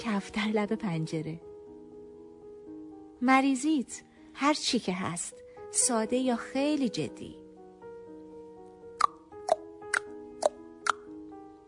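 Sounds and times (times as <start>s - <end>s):
speech: 0.0s - 1.5s, 3.2s - 7.4s
hollow tongue pops: 9.0s - 11.1s.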